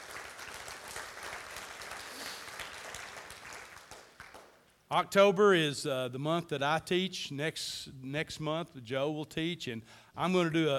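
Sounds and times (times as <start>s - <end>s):
audience applause: 0.0s - 4.5s
speech: 4.9s - 10.7s.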